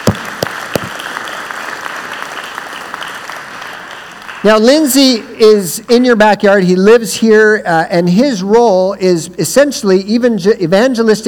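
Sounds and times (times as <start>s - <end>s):
audience round of applause: 0.0s - 4.6s
speech: 4.4s - 11.2s.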